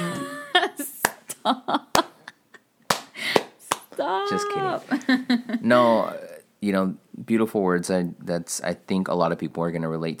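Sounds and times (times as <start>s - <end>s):
speech: 0.7s - 1.9s, 4.4s - 10.1s
Cesar Chavez clap: 1.0s - 2.1s, 2.9s - 4.0s.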